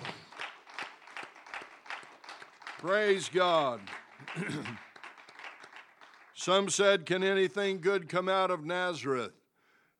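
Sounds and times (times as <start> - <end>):
rhythmic hand clapping at a church praise service: 0.0 - 6.8
speech: 2.8 - 4.9, 6.4 - 9.4.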